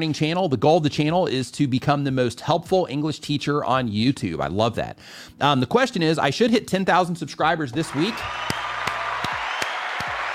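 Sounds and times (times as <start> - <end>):
speech: 0.0 - 8.6
clapping: 7.8 - 10.3.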